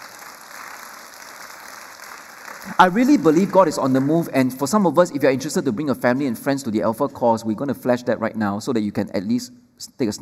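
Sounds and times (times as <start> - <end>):
audience clapping: 0.0 - 4.8
speech: 2.6 - 10.2.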